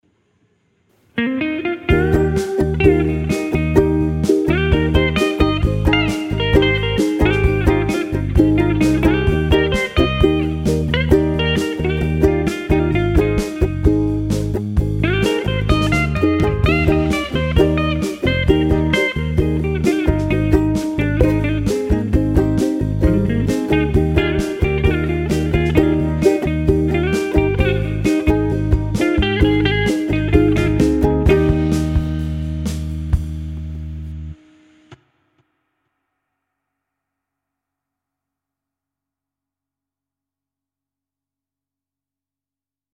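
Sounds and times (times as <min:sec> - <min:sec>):
ukulele: 0:01.2 - 0:34.4.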